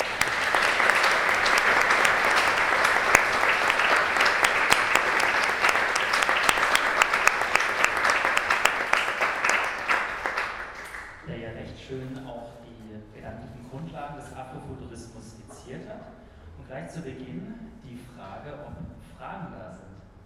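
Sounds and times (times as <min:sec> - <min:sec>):
audience applause after a talk: 0:00.0 - 0:11.2.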